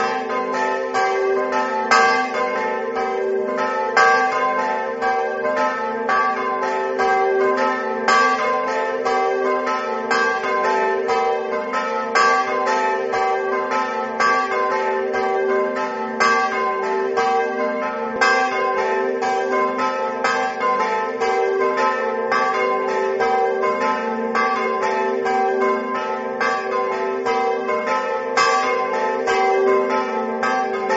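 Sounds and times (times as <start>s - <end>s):
bells ringing: 0.0s - 30.9s.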